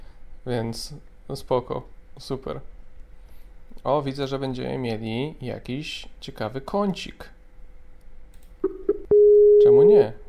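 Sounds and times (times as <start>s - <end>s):
speech: 0.4s - 2.7s, 3.8s - 7.4s, 9.7s - 10.2s
telephone busy tone after hang-up: 8.9s - 9.9s.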